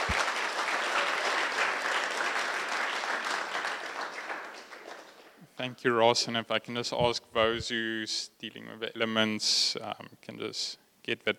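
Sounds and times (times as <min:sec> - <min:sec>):
audience applause: 0:00.0 - 0:05.3
speech: 0:05.6 - 0:11.3.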